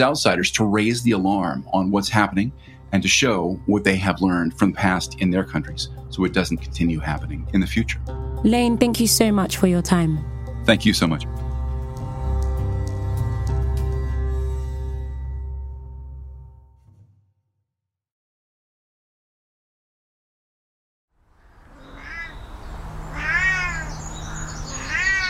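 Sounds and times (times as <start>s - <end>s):
speech: 0.0s - 11.4s
music: 0.0s - 17.3s
Scottish wildcat yowling at the Highland Wildlife Park: 21.7s - 25.2s.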